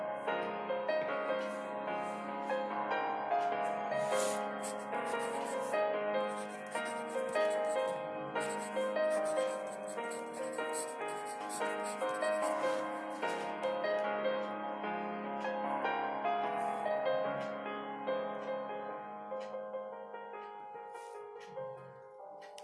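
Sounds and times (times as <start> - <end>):
K-pop piano music: 0.0 - 22.6
bright scratchy ticks: 4.1 - 13.4, 22.4 - 22.6.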